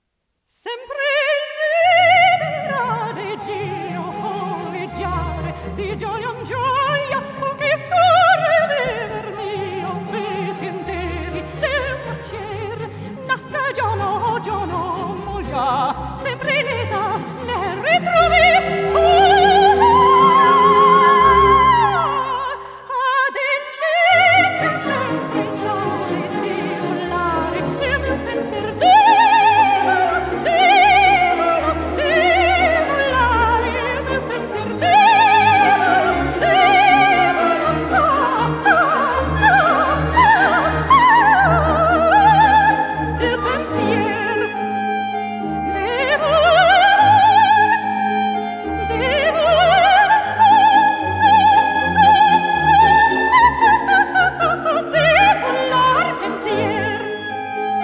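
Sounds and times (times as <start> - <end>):
opera singer singing: 0.5 - 57.8.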